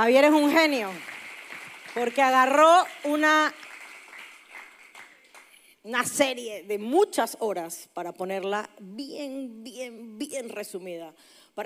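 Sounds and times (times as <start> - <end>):
speech: 0.0 - 1.1, 2.0 - 3.6, 5.8 - 11.6
audience applause: 0.6 - 5.6.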